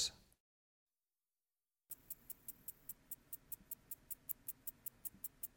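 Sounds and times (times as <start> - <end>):
slender meadow katydid Conocephalus fasciatus buzzing and ticking: 1.9 - 5.5.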